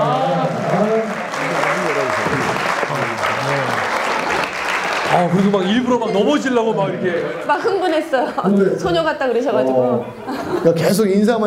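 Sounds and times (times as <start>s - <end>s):
applause welcoming a guest: 0.0s - 7.2s
speech: 5.2s - 11.4s
laughter: 10.1s - 11.1s.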